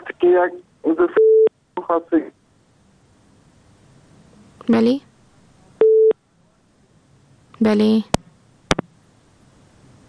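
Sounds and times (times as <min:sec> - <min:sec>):
speech: 0:00.2 - 0:01.2, 0:01.9 - 0:02.4, 0:04.7 - 0:05.1, 0:07.6 - 0:08.2
telephone busy tone after a dropped phone-in call: 0:01.2 - 0:01.5, 0:05.8 - 0:06.2.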